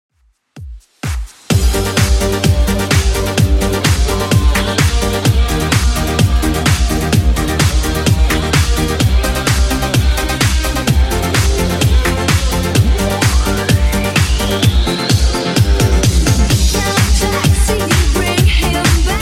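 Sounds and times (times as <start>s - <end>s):
80s Redrum drum machine beat: 0.2s - 19.2s.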